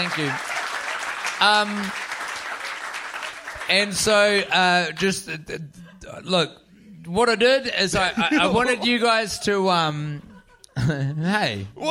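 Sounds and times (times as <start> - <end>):
speech: 0.0 - 0.5, 1.4 - 2.0, 3.7 - 11.8
audience applause: 0.0 - 4.4
laughter: 8.0 - 11.6.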